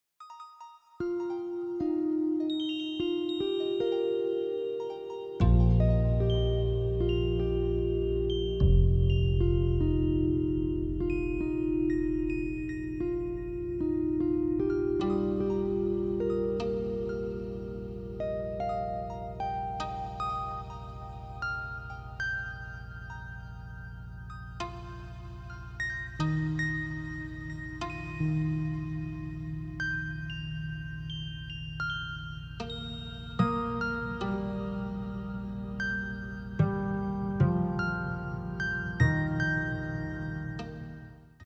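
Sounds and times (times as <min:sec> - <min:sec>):
enchanted harp playing: 0:00.2 - 0:41.4.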